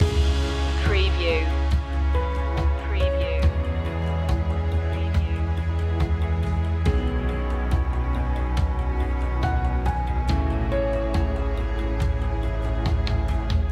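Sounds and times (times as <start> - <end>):
epic strings loop: 0.0 - 13.6.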